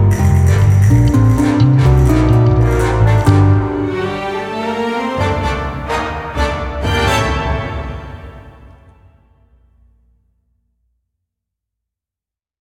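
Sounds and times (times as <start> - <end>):
combat music loop: 0.0 - 7.5.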